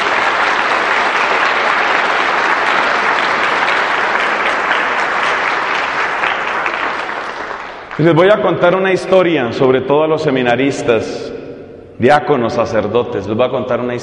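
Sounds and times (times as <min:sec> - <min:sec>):
audience applause: 0:00.0 - 0:08.4
speech: 0:08.0 - 0:11.3, 0:12.0 - 0:14.0.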